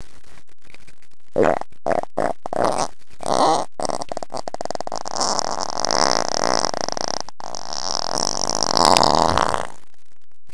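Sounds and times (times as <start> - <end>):
fart: 1.4 - 9.8.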